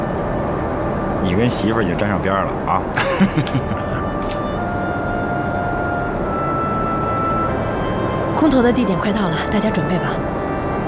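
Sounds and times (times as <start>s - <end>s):
airplane engine drone inside aircraft cabin: 0.0s - 10.8s
speech: 1.2s - 4.4s, 8.4s - 10.4s
laughter: 2.7s - 4.3s.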